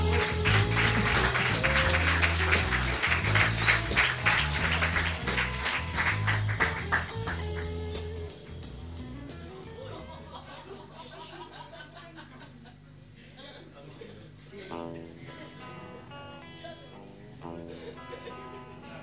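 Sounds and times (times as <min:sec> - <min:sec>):
laughter: 0:00.0 - 0:07.6, 0:09.5 - 0:19.0
audience applause at a poetry night welcoming a guest onstage: 0:00.0 - 0:07.8.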